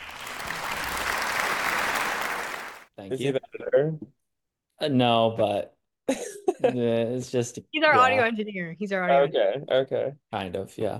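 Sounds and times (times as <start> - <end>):
applause sound effect: 0.0 - 2.9
speech: 3.0 - 4.2, 4.8 - 10.9.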